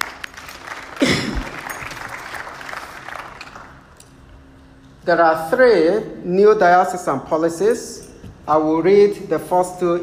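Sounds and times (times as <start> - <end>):
audience clapping: 0.0 - 4.0
speech: 5.1 - 10.0.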